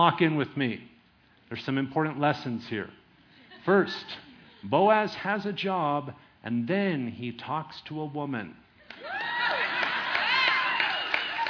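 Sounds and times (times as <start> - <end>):
speech: 0.0 - 0.9, 1.5 - 3.0, 3.6 - 9.1
crowd of women cheering and whooping: 8.9 - 11.4
steady clapping: 8.9 - 11.4.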